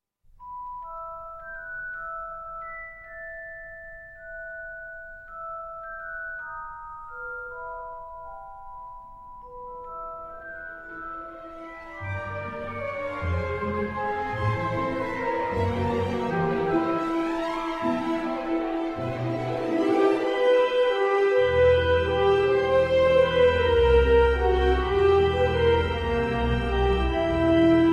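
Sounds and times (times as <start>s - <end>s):
theme music: 7.1s - 27.9s.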